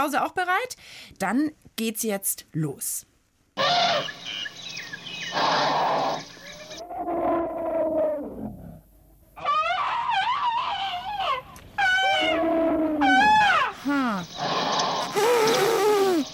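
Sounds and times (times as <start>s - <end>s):
speech: 0.0s - 4.5s
Asian and African elephants trumpeting: 3.6s - 4.3s, 5.1s - 7.8s, 9.4s - 16.3s.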